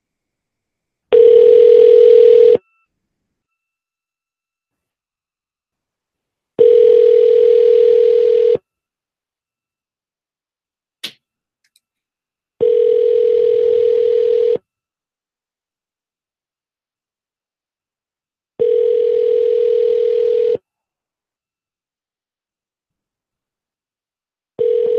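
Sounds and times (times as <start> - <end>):
telephone ringing tones on a call to an Exxon station in Miami: 1.1 - 2.6, 6.6 - 8.6, 12.6 - 14.6, 18.6 - 20.6, 24.6 - 24.9.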